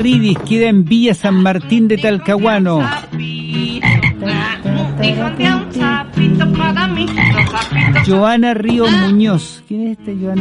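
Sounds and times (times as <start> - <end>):
speech: 0.0 - 3.7, 5.0 - 10.3
chorus of frogs croaking: 3.8 - 4.2, 7.2 - 8.1.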